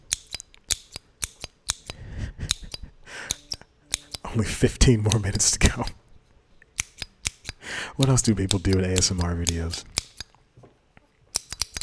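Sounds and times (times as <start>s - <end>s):
staple remover being squeezed: 0.0s - 4.3s, 5.0s - 6.0s, 6.8s - 10.3s, 11.3s - 11.8s
speech: 4.4s - 6.0s, 8.0s - 10.0s.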